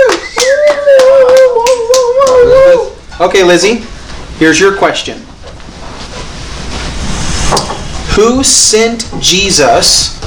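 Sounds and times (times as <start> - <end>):
clapping sound effect from clap machine: 0.0 - 2.4
speech: 3.2 - 5.3, 8.2 - 10.2.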